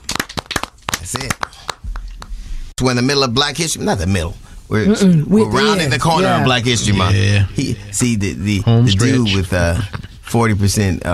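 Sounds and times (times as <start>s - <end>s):
clapping sound effect: 0.0s - 2.4s
speech: 1.1s - 1.6s, 2.8s - 11.1s.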